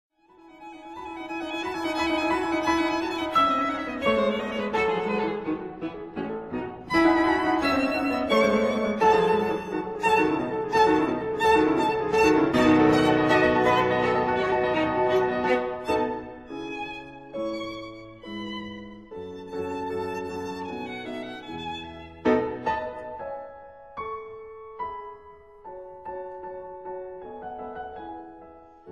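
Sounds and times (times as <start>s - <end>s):
violin and piano sonata in A major: 0.2s - 28.9s.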